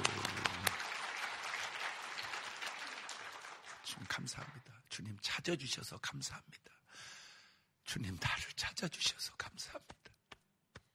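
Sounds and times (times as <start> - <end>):
audience applause: 0.0 - 3.8
speech: 3.9 - 7.1, 7.9 - 10.0.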